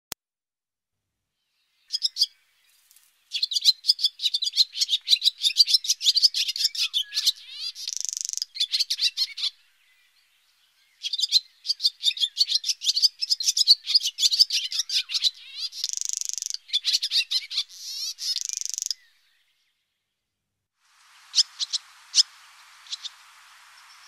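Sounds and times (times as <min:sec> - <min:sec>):
barn swallow twittering: 0:03.3 - 0:19.5, 0:21.2 - 0:24.0.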